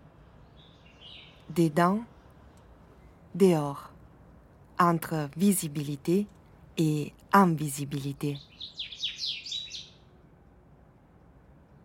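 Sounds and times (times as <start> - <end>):
faint low hum: 0.0 - 8.8, 9.5 - 11.8
birds chirping in the morning: 0.4 - 3.2, 8.0 - 10.1
speech: 1.5 - 2.1, 3.4 - 3.9, 4.8 - 9.0.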